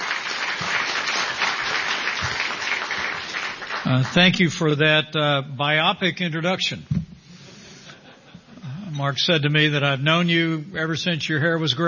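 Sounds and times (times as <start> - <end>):
audience applause: 0.0 - 4.5
speech: 3.9 - 7.0, 9.0 - 11.8.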